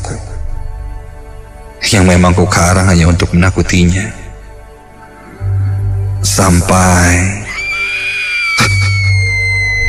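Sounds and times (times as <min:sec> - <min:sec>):
speech: 0:01.9 - 0:04.2, 0:06.3 - 0:07.4
girl screaming: 0:07.5 - 0:09.8.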